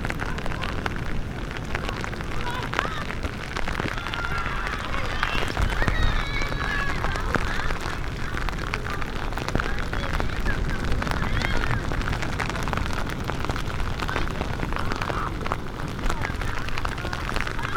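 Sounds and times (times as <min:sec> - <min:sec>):
rain on a beach in Vietnam: 0:00.0 - 0:17.7.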